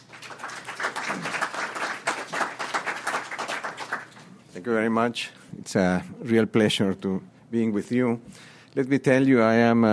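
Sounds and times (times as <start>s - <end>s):
audience applause welcoming an introduced speaker: 0.0s - 4.2s
speech: 4.6s - 9.9s.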